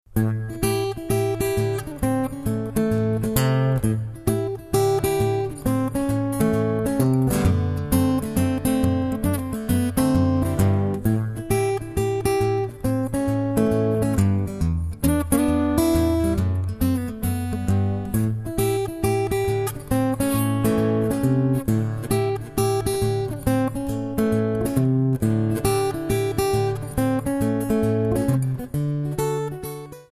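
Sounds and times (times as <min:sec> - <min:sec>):
blues music: 0:00.1 - 0:30.0.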